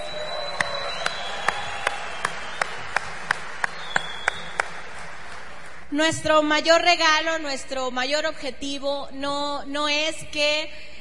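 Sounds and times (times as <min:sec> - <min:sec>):
audience applause: 0:00.0 - 0:05.9
speech: 0:05.9 - 0:10.9.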